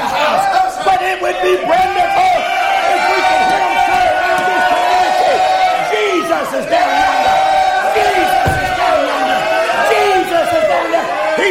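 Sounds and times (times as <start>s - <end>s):
audience shouting: 0.0s - 11.4s.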